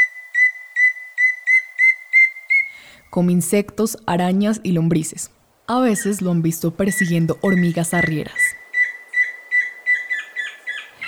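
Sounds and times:
antpitta tororoí chusquero singing: 0:00.0 - 0:02.9, 0:06.8 - 0:11.0
speech: 0:03.1 - 0:08.4.

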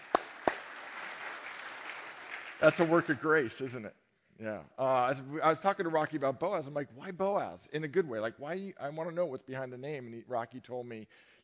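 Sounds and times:
audience clapping: 0:00.0 - 0:03.5
speech: 0:02.6 - 0:11.3.

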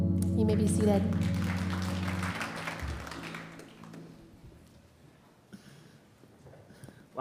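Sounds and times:
crowd clapping: 0:00.2 - 0:04.7
speech: 0:00.6 - 0:01.4.

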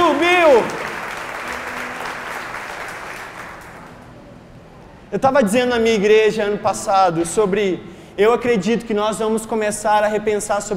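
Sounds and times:
crowd applauding: 0:00.0 - 0:04.2
speech: 0:05.1 - 0:10.7.

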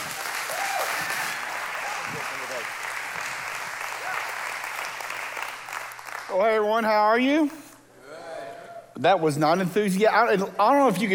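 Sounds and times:
conference audience at a Grace Life gathering applauding: 0:00.0 - 0:06.4
speech: 0:06.3 - 0:07.6, 0:09.0 - 0:11.1.

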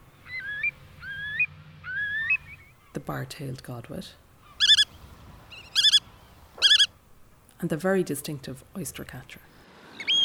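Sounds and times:
Eurasian curlew calling: 0:00.2 - 0:03.0, 0:04.4 - 0:04.9, 0:05.6 - 0:07.0, 0:10.0 - 0:10.2
speech: 0:03.0 - 0:04.2, 0:07.6 - 0:09.6.

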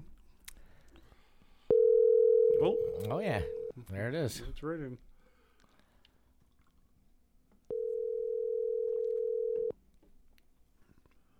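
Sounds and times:
telephone dial tone: 0:01.7 - 0:03.7, 0:07.7 - 0:09.7
speech: 0:02.6 - 0:05.1.

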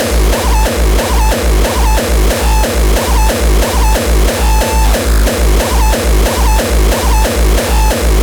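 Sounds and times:
heavily distorted drum machine beat: 0:00.0 - 0:08.2.

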